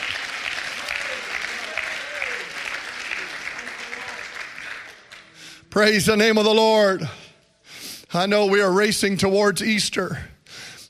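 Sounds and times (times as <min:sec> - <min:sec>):
crowd clapping: 0:00.0 - 0:05.7
speech: 0:05.8 - 0:07.2, 0:08.2 - 0:10.3.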